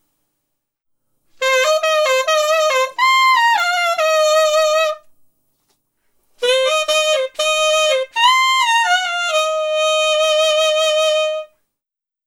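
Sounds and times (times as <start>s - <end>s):
alto saxophone test: 1.4s - 5.1s, 6.4s - 11.6s.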